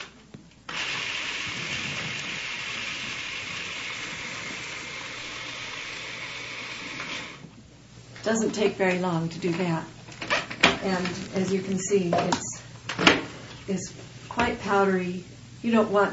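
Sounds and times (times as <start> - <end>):
food processor finely chopping nuts: 0.7 - 7.5
speech: 8.2 - 10.0, 10.8 - 12.5, 13.7 - 16.1.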